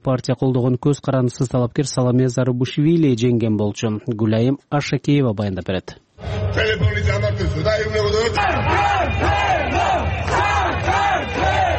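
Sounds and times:
speech: 0.0 - 9.9
thousands of protesters chanting at a rally on Rustaveli Avenue in Tbilisi: 7.8 - 11.7.

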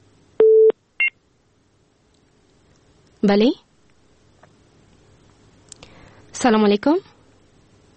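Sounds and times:
telephone disconnection tones as a call drops: 0.4 - 1.2
speech: 3.2 - 3.6, 6.4 - 7.1.

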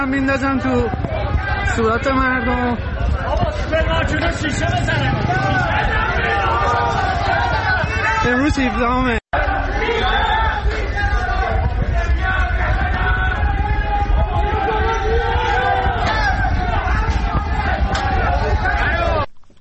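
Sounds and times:
speech: 0.0 - 1.1, 1.7 - 7.2, 8.2 - 9.2
street protest crowd shouting and chanting at night: 0.0 - 19.3.

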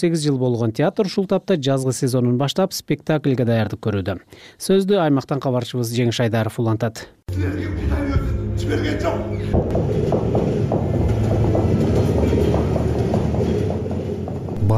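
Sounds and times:
speech: 0.0 - 11.1
trains passing: 7.6 - 14.7
wheels clacking over rail joints: 9.8 - 14.7.

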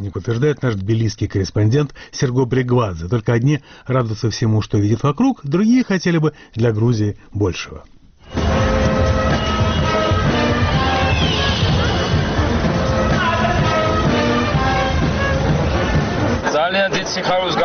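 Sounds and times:
speech: 0.1 - 8.4, 17.1 - 17.6
large festive street crowd: 8.3 - 17.6.

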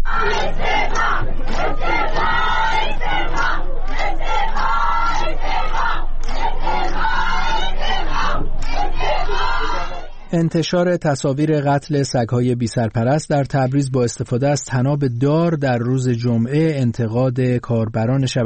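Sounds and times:
protest crowd chanting slogans: 0.0 - 10.4
speech: 10.3 - 18.4.

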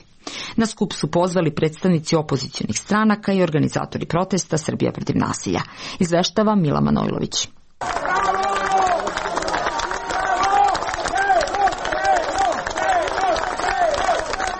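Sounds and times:
speech: 0.6 - 8.0
crowd applauding outside the special court building in Belgrade: 7.8 - 14.5.

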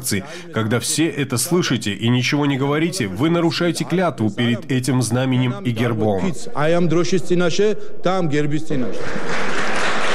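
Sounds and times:
speech: 0.0 - 9.6
applause in parliament: 8.9 - 10.1.

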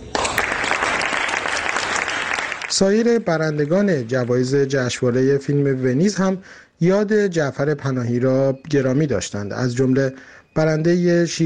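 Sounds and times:
audience applauding filmmakers at a Venice Film Festival event: 0.0 - 4.7
speech: 2.8 - 11.4.

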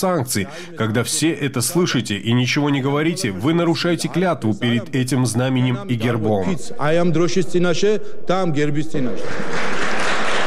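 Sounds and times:
speech: 0.0 - 9.9
crowd of lawmakers applauding: 9.2 - 10.4.

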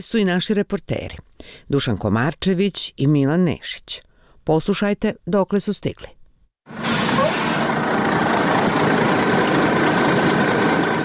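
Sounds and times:
speech: 0.0 - 6.8
heavy bus engine idling as it stops: 6.8 - 11.0.

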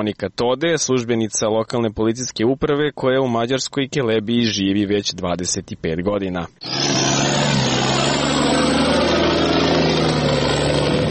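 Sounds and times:
speech: 0.0 - 7.3
military truck engine passing on a quiet village morning: 6.6 - 11.0.

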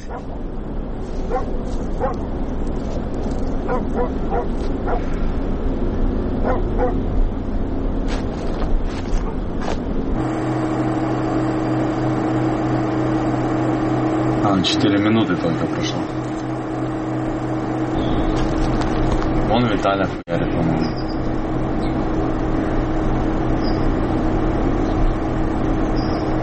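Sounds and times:
dog barking: 0.0 - 0.4, 1.3 - 2.2, 3.7 - 5.1, 6.4 - 7.0
low engine-like rumble: 0.0 - 26.4
speech: 0.1 - 0.7, 1.3 - 7.3, 14.6 - 16.2, 19.6 - 20.5.

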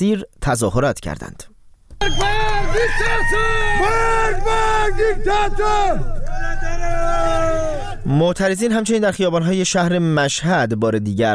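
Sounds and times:
speech: 0.0 - 1.5, 2.1 - 6.2, 6.8 - 11.3
crowd of protesters chanting in unison in the street: 2.0 - 8.2.

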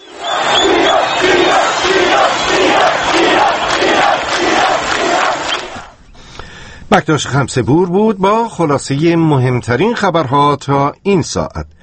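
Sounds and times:
protest crowd chanting a rhythmic slogan: 0.0 - 5.9
speech: 6.9 - 11.8.

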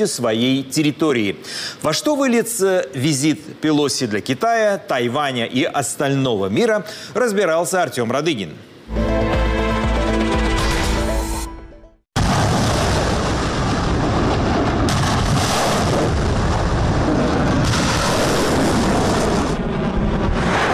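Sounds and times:
speech: 0.0 - 9.0
short musical passage: 8.9 - 12.1
artillery fire during military drills in the Taiwan Strait: 12.2 - 20.7.

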